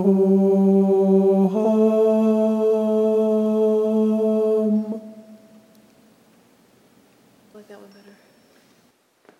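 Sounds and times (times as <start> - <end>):
tenor singing sacred choral music: 0.0 - 6.1.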